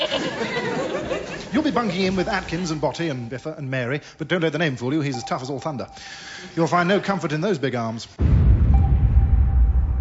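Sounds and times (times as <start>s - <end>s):
laughter: 0.0s - 2.5s
speech: 1.5s - 8.4s
bomb explosion: 8.2s - 9.9s.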